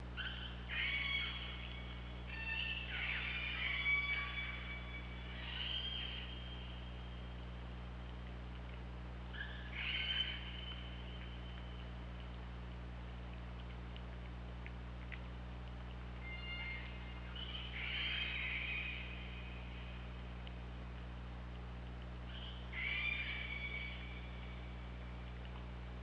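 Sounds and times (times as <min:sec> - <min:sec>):
orca pulsed calls: 0:00.0 - 0:07.8, 0:09.2 - 0:12.4, 0:16.1 - 0:20.6, 0:21.8 - 0:25.4
low underwater hum: 0:00.0 - 0:26.0.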